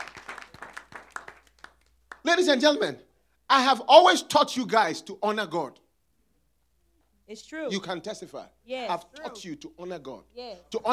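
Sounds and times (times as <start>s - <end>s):
audience clapping: 0.0s - 2.4s
speech: 2.2s - 5.8s, 7.3s - 10.9s.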